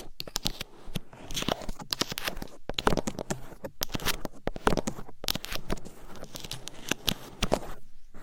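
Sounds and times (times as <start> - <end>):
scratching and tapping right on a microphone: 0.0 - 7.8.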